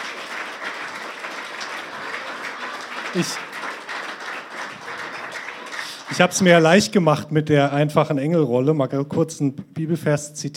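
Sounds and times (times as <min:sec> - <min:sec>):
audience applause: 0:00.0 - 0:06.6
speech: 0:03.1 - 0:03.5, 0:06.1 - 0:10.5.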